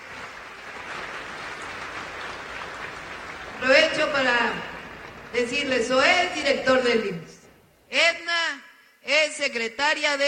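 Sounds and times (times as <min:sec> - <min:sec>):
audience applause: 0:00.0 - 0:05.4
speech: 0:03.6 - 0:04.7, 0:05.3 - 0:08.2, 0:09.1 - 0:10.2.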